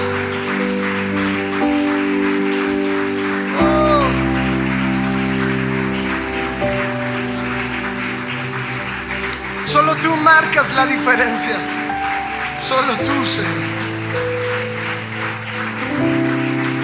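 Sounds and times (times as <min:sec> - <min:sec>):
audience clapping rhythmically: 0:00.0 - 0:16.8
sustained keyboard chords: 0:00.0 - 0:16.8
speech: 0:10.1 - 0:11.8, 0:12.6 - 0:13.9.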